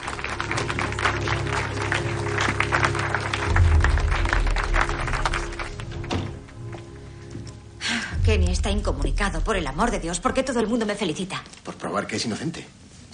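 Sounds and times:
group applauding a woman at a wrongful imprisonment association: 0.0 - 6.6
low rumble: 3.5 - 6.1, 8.1 - 10.8
speech: 8.6 - 12.8.

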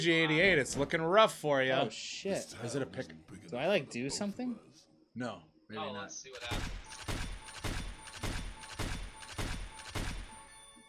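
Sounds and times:
speech: 0.0 - 6.8
gunshot effects from a slot video game: 6.4 - 10.5.

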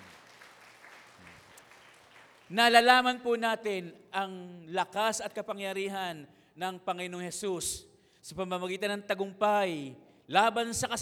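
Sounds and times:
congregation applauding during a church service: 0.0 - 3.2
speech: 2.5 - 11.0.

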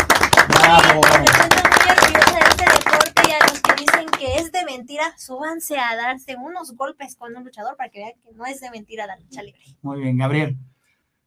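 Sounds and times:
audience clapping: 0.0 - 4.6
speech: 4.8 - 10.7.

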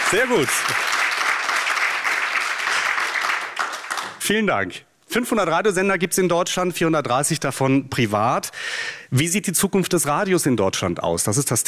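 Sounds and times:
live audience applause: 0.0 - 4.2
speech: 0.1 - 1.0, 4.3 - 11.6.

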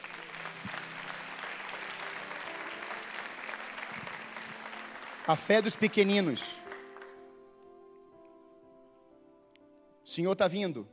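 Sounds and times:
audience applause: 0.0 - 7.2
speech: 5.3 - 6.6, 10.2 - 10.9.

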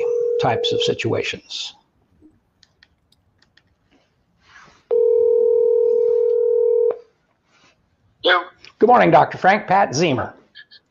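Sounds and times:
telephone tone as a call is placed to a listener: 0.0 - 1.0, 4.9 - 7.0
speech: 0.4 - 1.8, 8.2 - 10.4
soft rustle: 3.7 - 8.1.

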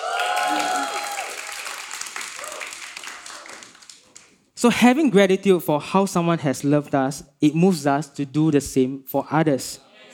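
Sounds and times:
crowd cheering with whoops and shouts: 0.0 - 4.3
speech: 4.6 - 9.9.

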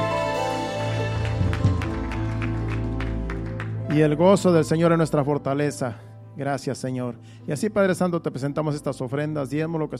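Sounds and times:
loud audience applause: 0.0 - 4.0
speech: 3.9 - 9.9.

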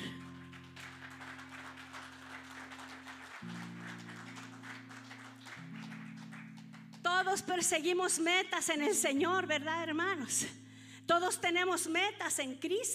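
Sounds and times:
audience clapping hands: 0.0 - 7.5
speech: 7.2 - 12.9.

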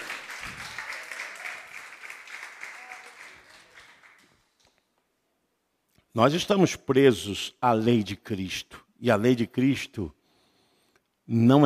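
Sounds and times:
audience applause: 0.0 - 4.5
speech: 6.2 - 10.2, 11.3 - 11.6.

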